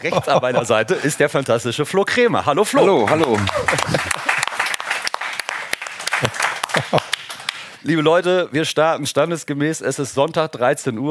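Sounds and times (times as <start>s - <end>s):
laughter: 0.0s - 1.2s, 2.8s - 4.8s, 6.0s - 7.3s
speech: 0.0s - 4.2s, 7.9s - 11.1s
crowd clapping: 2.8s - 7.8s.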